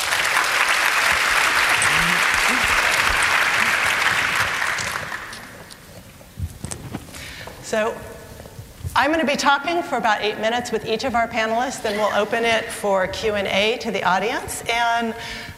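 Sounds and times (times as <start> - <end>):
audience applause for a panel: 0.0 - 5.6
speech: 7.7 - 8.1, 9.0 - 15.5.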